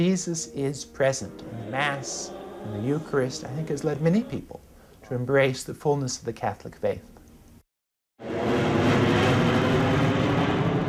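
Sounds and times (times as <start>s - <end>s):
jets from Atlanta's busy airport roaring: 0.0s - 4.7s, 8.2s - 10.8s
speech: 0.0s - 7.1s.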